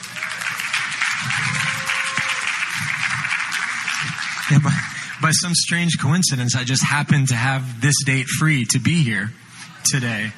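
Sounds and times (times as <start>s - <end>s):
audience applause: 0.0s - 5.5s
speech: 4.5s - 10.3s.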